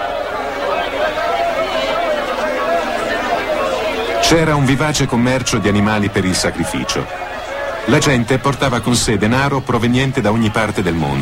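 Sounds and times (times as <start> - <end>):
lively crowd chatter in temple courtyard: 0.0 - 11.2
speech: 4.3 - 7.3, 7.9 - 11.2.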